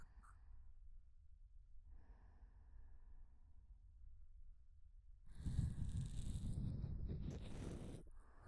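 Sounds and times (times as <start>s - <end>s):
ear cleaning loop on the right: 5.4s - 8.0s.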